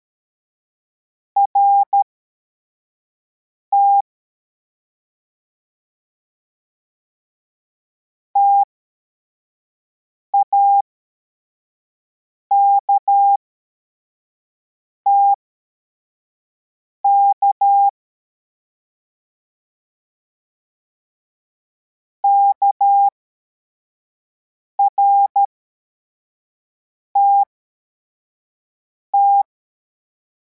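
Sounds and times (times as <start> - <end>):
CW morse code beeps: 1.5 - 2.0, 3.8 - 4.0, 8.4 - 8.7, 10.4 - 10.8, 12.5 - 13.4, 15.1 - 15.4, 17.1 - 17.9, 22.2 - 23.1, 24.8 - 25.5, 29.2 - 29.4.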